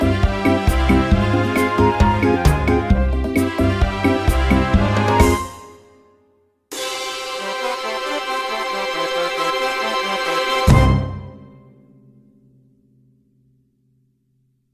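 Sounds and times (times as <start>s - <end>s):
audition accompaniment music: 0.0s - 6.1s, 6.7s - 11.7s.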